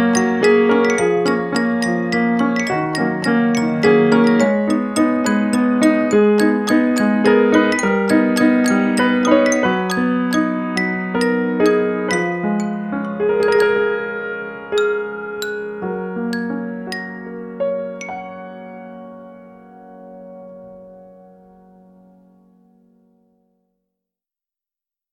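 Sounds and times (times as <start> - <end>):
toy piano: 0.0 - 19.0
piano waltz: 0.0 - 23.8.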